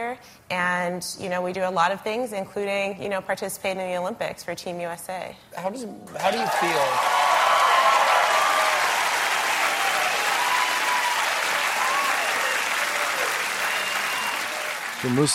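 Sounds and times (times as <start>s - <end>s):
speech: 0.0s - 7.2s, 15.0s - 15.3s
sustained applause: 6.2s - 15.3s.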